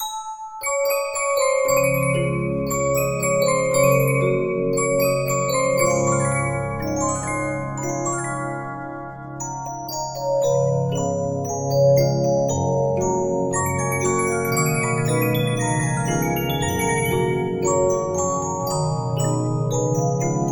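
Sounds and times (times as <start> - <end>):
Regina 15-inch disc music box: 0.0 - 20.5.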